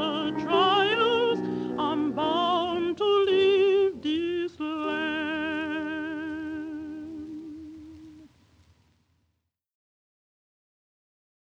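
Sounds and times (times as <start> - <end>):
spiritual song: 0.0 - 8.5.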